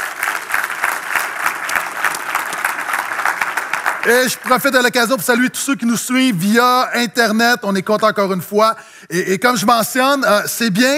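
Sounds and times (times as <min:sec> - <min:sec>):
audience applause: 0:00.0 - 0:04.8
speech: 0:04.0 - 0:10.9.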